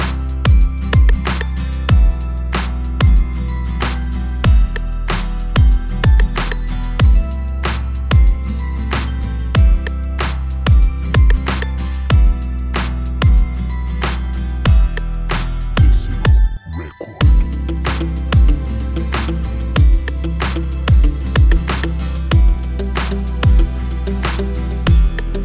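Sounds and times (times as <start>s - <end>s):
RnB music: 0.0s - 25.4s.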